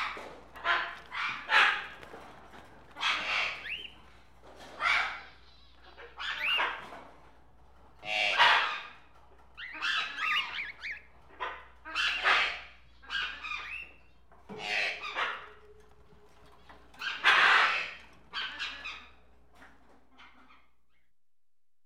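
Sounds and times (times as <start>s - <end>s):
tropical birds squawking: 0.0s - 21.0s.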